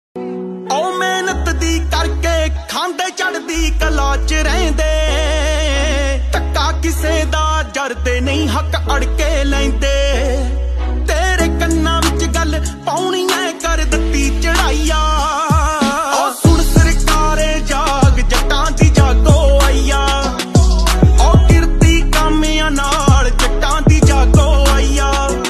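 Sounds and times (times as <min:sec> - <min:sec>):
Punjabi DJ music ringtone: 0:00.6 - 0:10.5, 0:11.1 - 0:25.4.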